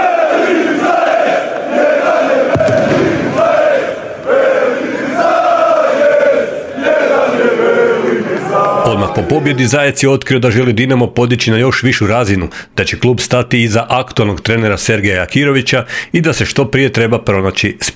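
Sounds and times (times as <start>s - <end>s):
Dinamo football fans singing and chanting after presidential election win: 0.0s - 9.7s
speech: 9.2s - 17.9s.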